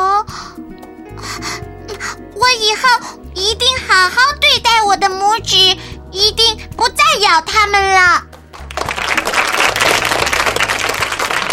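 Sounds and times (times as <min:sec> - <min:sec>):
speech: 0:00.6 - 0:01.5, 0:02.4 - 0:08.3
crowd applauding: 0:08.3 - 0:11.5.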